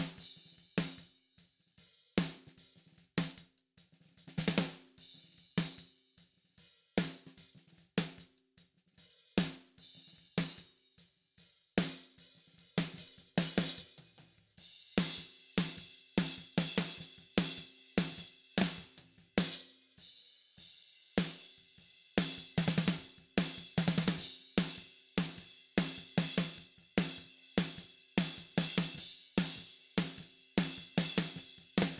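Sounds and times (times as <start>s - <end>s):
snare drum: 0.0s - 1.1s, 2.2s - 3.5s, 4.2s - 5.0s, 7.0s - 8.3s, 9.4s - 10.7s, 11.8s - 14.4s, 15.0s - 20.0s, 21.2s - 21.5s, 22.2s - 31.9s.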